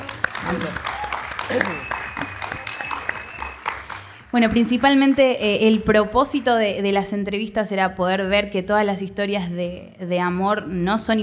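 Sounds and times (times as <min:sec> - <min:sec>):
audience applause: 0:00.0 - 0:05.6
speech: 0:00.5 - 0:00.9, 0:01.5 - 0:02.0, 0:04.4 - 0:11.2.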